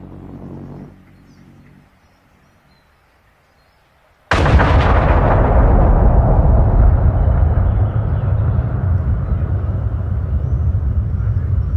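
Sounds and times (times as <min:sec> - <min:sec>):
crash: 0:04.3 - 0:11.6.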